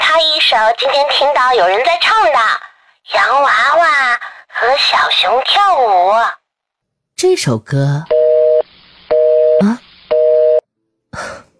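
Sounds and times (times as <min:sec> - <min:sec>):
speech: 0:00.4 - 0:06.4, 0:07.2 - 0:08.1, 0:09.6 - 0:09.8
telephone busy tone after hang-up: 0:08.1 - 0:10.6.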